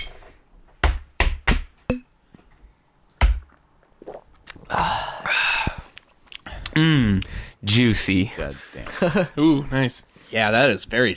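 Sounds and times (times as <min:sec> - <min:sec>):
people gulping beer: 0:03.1 - 0:06.7
breathy sighs of satisfaction: 0:04.7 - 0:07.6
speech: 0:06.8 - 0:11.1.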